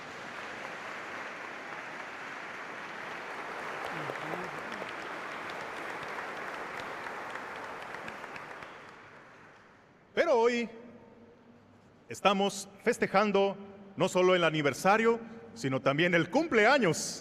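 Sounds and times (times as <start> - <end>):
applause: 0.0 - 10.1
speech: 10.3 - 10.8, 12.1 - 17.1.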